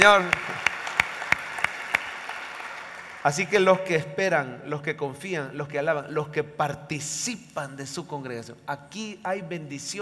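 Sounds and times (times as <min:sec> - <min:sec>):
speech: 0:00.0 - 0:00.5, 0:03.2 - 0:09.9
audience applauding: 0:00.0 - 0:03.6.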